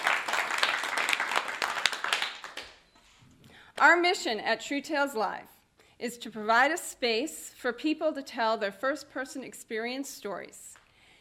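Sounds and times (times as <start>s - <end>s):
studio audience applause at a TV studio taping in Portsmouth, New Hampshire: 0.0s - 2.8s
speech: 3.8s - 10.8s.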